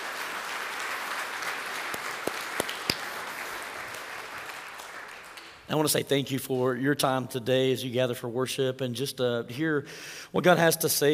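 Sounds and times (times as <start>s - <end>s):
audience applauding: 0.0s - 5.7s
speech: 5.7s - 11.1s.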